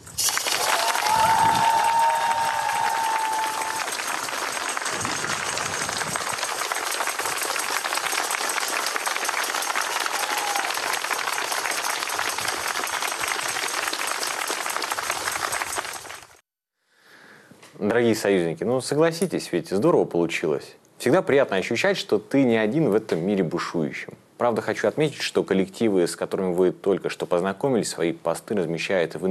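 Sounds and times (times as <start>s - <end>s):
sustained applause from a crowd: 0.0s - 16.4s
speech: 18.0s - 29.3s.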